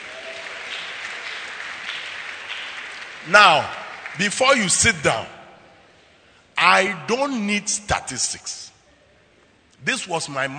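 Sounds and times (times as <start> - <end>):
audience clapping: 0.0 - 5.3
speech: 3.2 - 5.4, 6.6 - 8.7, 9.8 - 10.5.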